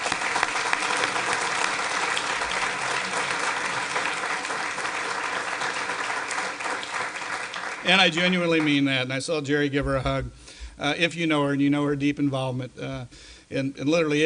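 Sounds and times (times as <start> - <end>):
audience round of applause: 0.0 - 8.9
speech: 7.9 - 14.2.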